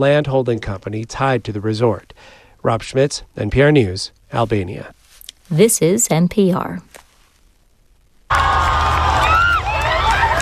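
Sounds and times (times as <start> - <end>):
speech: 0.0 - 7.0
huge crowd cheering and shouting in the street: 8.3 - 10.4.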